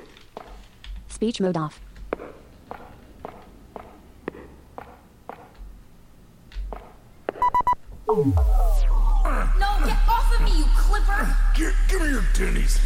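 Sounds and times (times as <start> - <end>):
video game character footsteps walking: 0.0 - 5.8, 6.5 - 7.6
speech: 1.2 - 1.9, 8.1 - 8.6, 9.3 - 12.8
electronic beeps: 7.4 - 9.0
loud sweeping tone dropping low: 8.1 - 9.8.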